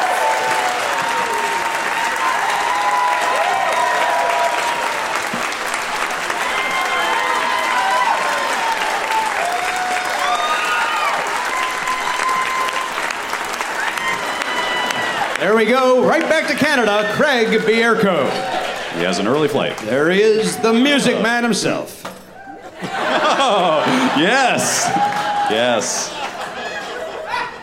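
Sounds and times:
whoops and cheers: 0.0s - 5.4s, 6.3s - 15.4s, 24.6s - 26.0s
studio audience applause greeting a talk show guest: 0.0s - 21.5s, 22.9s - 27.2s
speech: 15.6s - 22.1s, 23.4s - 26.2s
laughter: 17.8s - 19.5s, 22.4s - 27.6s.

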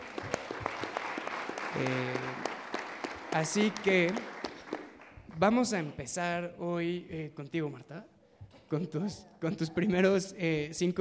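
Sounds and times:
audience applause: 0.0s - 5.6s
speech: 1.8s - 2.4s, 3.3s - 4.3s, 5.4s - 8.1s, 8.7s - 10.9s.

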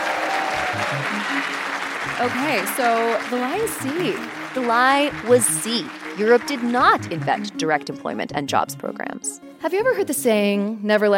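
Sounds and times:
room full of people applauding: 0.0s - 7.8s
speech: 0.8s - 11.1s.

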